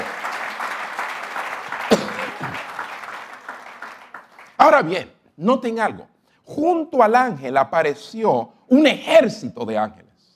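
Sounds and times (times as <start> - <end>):
audience applause: 0.0 - 4.6
sharp loud clap: 0.0 - 4.6
speech: 4.6 - 10.0.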